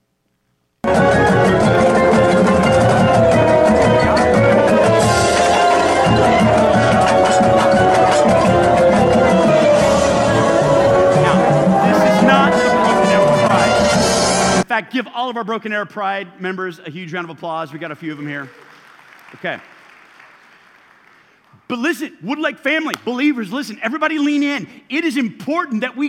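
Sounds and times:
marching band drums beating a steady pulse: 0:00.8 - 0:14.6
marching band sustained brass tones: 0:00.8 - 0:14.7
crowd murmur: 0:00.9 - 0:14.1
speech: 0:15.4 - 0:18.6, 0:19.4 - 0:19.7, 0:21.7 - 0:26.0.

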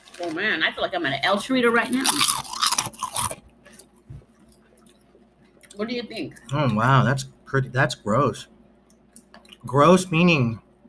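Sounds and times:
speech: 0:00.2 - 0:02.5, 0:05.8 - 0:08.6, 0:09.6 - 0:10.6
crunching wavy potato chips: 0:01.9 - 0:03.4.

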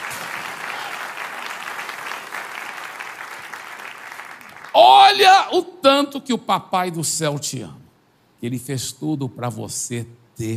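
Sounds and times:
crowd applause: 0:00.0 - 0:04.8
speech: 0:04.8 - 0:07.8, 0:08.4 - 0:10.5.

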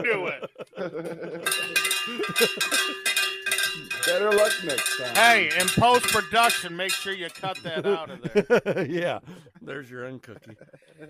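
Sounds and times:
laughter: 0:00.0 - 0:03.0, 0:07.3 - 0:09.6, 0:10.2 - 0:11.0
speech: 0:00.0 - 0:03.2, 0:04.1 - 0:11.0
bell being hit: 0:01.4 - 0:08.0.

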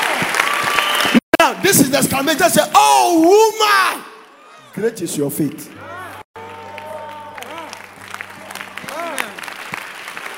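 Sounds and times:
audience clapping during a sermon: 0:00.0 - 0:02.6, 0:05.4 - 0:10.3
speech: 0:01.5 - 0:04.1, 0:04.8 - 0:06.0.

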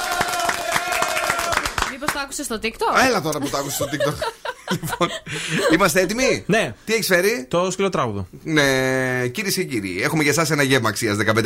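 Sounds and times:
small group applauding: 0:00.0 - 0:02.4
speech: 0:02.2 - 0:11.4
laughter: 0:03.0 - 0:06.4.

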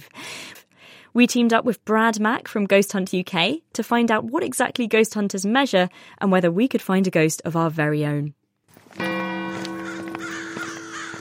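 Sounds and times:
speech: 0:01.2 - 0:09.2
crow cawing outdoors: 0:09.5 - 0:11.1.

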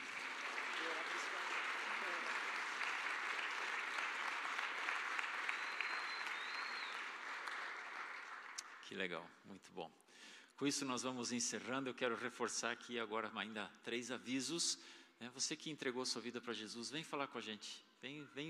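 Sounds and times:
audience applause: 0:00.0 - 0:08.8
speech: 0:08.9 - 0:18.4.

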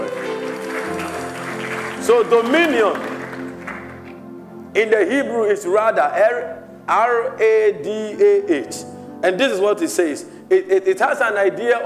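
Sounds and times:
audience clapping: 0:00.0 - 0:04.2
sustained musical tones: 0:00.0 - 0:05.2
speech: 0:02.1 - 0:03.1, 0:04.8 - 0:11.8.

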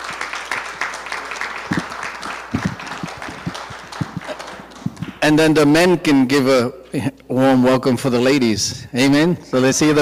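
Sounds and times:
crowd applauding: 0:00.0 - 0:05.4
speech: 0:05.2 - 0:10.0.

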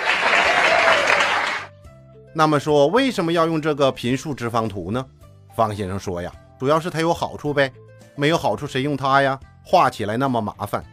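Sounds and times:
applause: 0:00.0 - 0:01.8
speech: 0:02.4 - 0:10.9.

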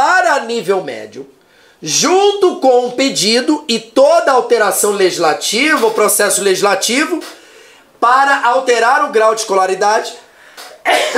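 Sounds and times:
speech: 0:00.4 - 0:07.4, 0:08.0 - 0:10.2, 0:10.8 - 0:11.1
person sneezing: 0:10.6 - 0:11.1.

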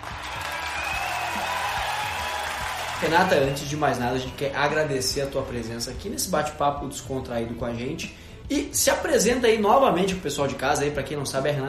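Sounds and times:
audience applause: 0:00.0 - 0:03.6
speech: 0:03.0 - 0:11.6.

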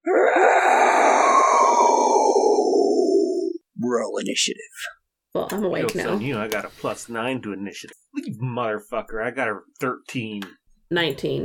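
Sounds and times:
voice imitating monster's otherworldly scream: 0:00.0 - 0:03.6
speech: 0:04.1 - 0:11.4.

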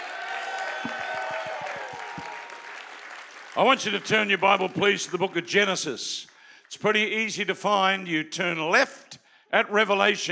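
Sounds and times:
crowd clapping: 0:00.0 - 0:06.8
speech: 0:03.6 - 0:10.3.

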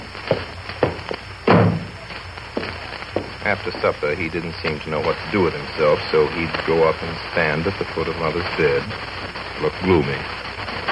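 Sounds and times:
door being shut: 0:01.5 - 0:02.0
speech: 0:03.4 - 0:10.4.

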